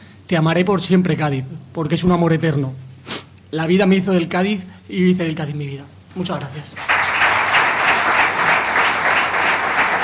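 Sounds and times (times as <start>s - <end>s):
speech: 0.3s - 6.9s
audience applause for team captain: 6.8s - 10.0s.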